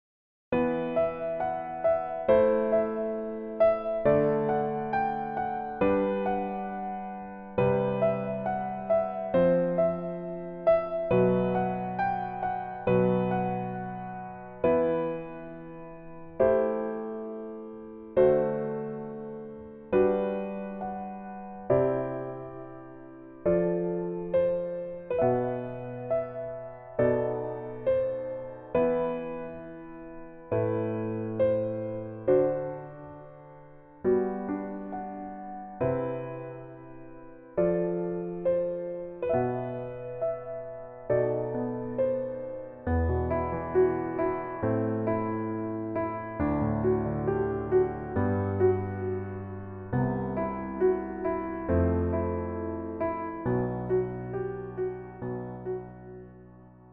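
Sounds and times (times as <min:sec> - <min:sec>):
piano: 0:00.5 - 0:56.9.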